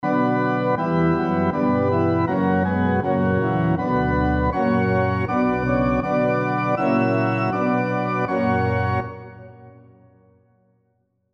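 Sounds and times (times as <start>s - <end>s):
SATB four-part harmony on piano: 0.0s - 10.0s.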